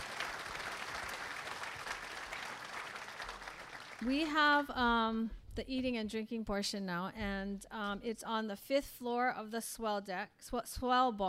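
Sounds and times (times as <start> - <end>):
audience applause: 0.0 - 4.1
speech: 4.0 - 11.2.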